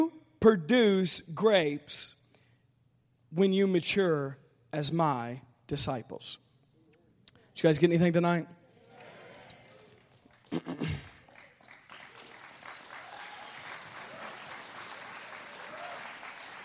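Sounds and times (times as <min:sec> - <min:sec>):
speech: 0:00.4 - 0:02.2, 0:03.3 - 0:06.4, 0:07.6 - 0:08.6
audience clapping: 0:09.0 - 0:16.6.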